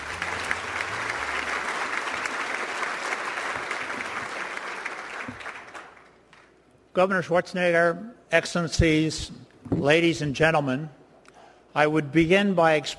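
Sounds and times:
applause: 0:00.0 - 0:06.5
speech: 0:07.0 - 0:11.0, 0:11.7 - 0:12.9.

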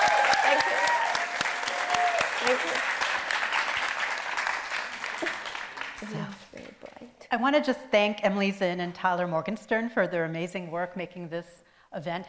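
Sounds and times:
audience applause: 0:00.0 - 0:06.6
speech: 0:07.3 - 0:12.2.

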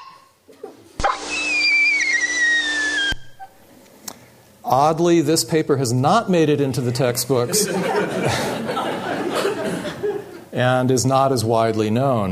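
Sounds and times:
bird predator alarm screech with falling whistle: 0:01.0 - 0:03.5
speech: 0:04.7 - 0:08.8, 0:10.6 - 0:12.2
laughter: 0:06.7 - 0:10.5.

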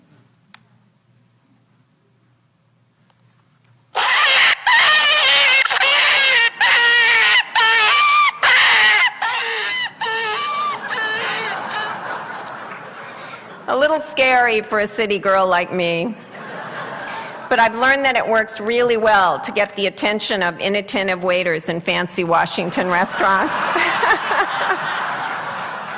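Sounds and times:
hunting predator call imitating animal distress: 0:03.9 - 0:12.2
laughter: 0:04.0 - 0:13.7, 0:16.2 - 0:17.5, 0:22.6 - 0:25.9
speech: 0:14.2 - 0:16.2, 0:17.5 - 0:24.9.

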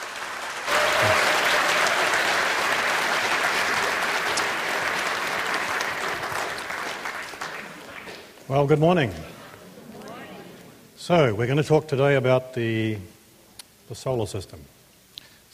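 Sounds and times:
audience applause welcoming a speaker to the stage: 0:00.0 - 0:10.8
speech: 0:08.5 - 0:09.3, 0:11.1 - 0:13.1, 0:13.9 - 0:14.8.

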